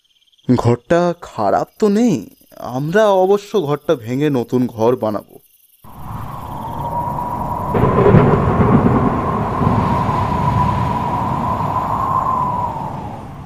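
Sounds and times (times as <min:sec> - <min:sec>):
speech: 0:00.5 - 0:05.4
thunder in a thunderstorm: 0:05.9 - 0:13.4.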